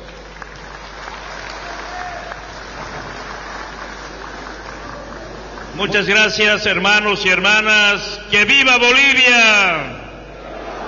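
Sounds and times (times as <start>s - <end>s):
applause: 0.0s - 6.2s
speech: 5.8s - 10.0s.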